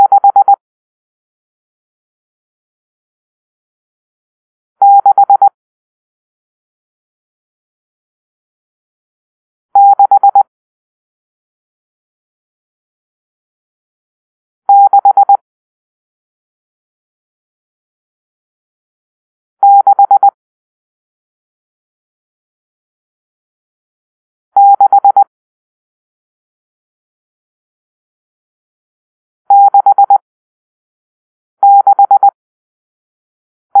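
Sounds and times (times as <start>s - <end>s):
morse code beeps for numeral six: 0.0s - 0.6s, 4.8s - 5.5s, 9.8s - 10.4s, 14.7s - 15.4s, 19.6s - 20.4s, 24.6s - 25.3s, 29.5s - 30.2s, 31.6s - 32.4s.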